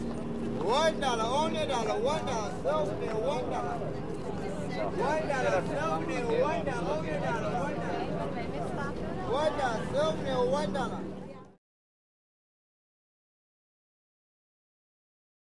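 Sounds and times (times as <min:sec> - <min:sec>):
crowd walla: 0:00.0 - 0:11.6
ferry boat: 0:00.0 - 0:11.6.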